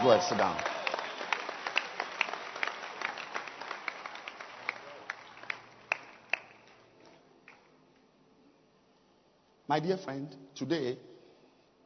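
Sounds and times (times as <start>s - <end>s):
speech: 0.0s - 0.8s, 9.7s - 11.1s
audience clapping: 0.0s - 7.8s.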